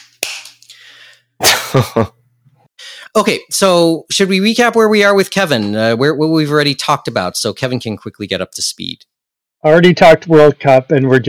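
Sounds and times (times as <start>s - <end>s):
hand clapping: 0.0s - 0.8s
speech: 1.7s - 2.2s, 3.2s - 11.2s.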